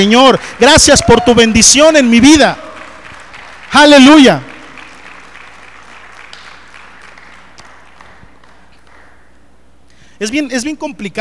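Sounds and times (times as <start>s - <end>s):
speech: 0.0s - 2.6s, 3.7s - 4.5s, 10.2s - 11.1s
audience applauding: 2.3s - 9.3s.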